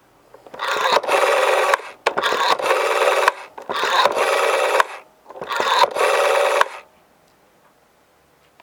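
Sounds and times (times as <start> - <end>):
dial sound: 0.4 - 6.9.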